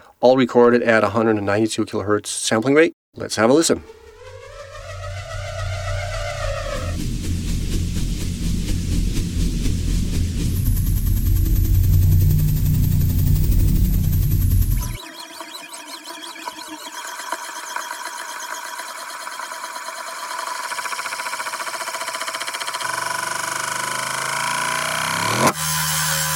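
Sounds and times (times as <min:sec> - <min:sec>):
speech: 0:00.2 - 0:04.0
rotating prop metallic spinning whir: 0:03.6 - 0:26.2
rotating props heavy rolling rumble and grinding: 0:03.8 - 0:15.0.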